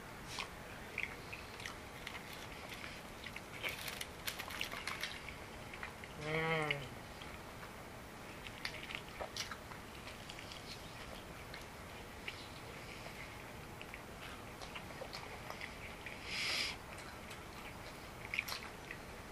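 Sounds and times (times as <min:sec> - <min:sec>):
chewing chicken wings: 0:00.3 - 0:19.2.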